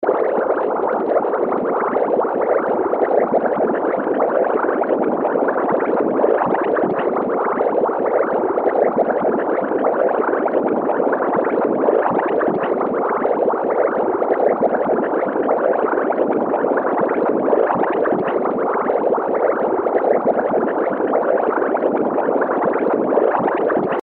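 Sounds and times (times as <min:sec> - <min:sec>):
smooth liquid bubbling: 0:00.0 - 0:24.0.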